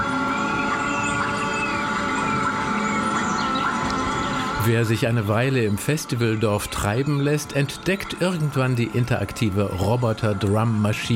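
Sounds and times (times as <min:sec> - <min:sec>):
Amazon rainforest bird calls: 0:00.0 - 0:11.1
speech: 0:04.7 - 0:11.1.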